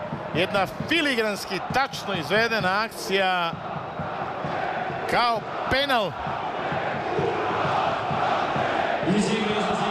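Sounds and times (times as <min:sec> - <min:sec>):
speech: 0:00.4 - 0:03.7, 0:05.1 - 0:06.3
stadium crowd of football fans chanting: 0:03.6 - 0:09.8.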